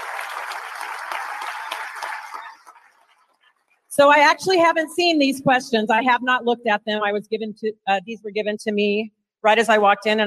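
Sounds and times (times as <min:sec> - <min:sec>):
round of applause: 0:00.0 - 0:03.4
speech: 0:04.0 - 0:10.2.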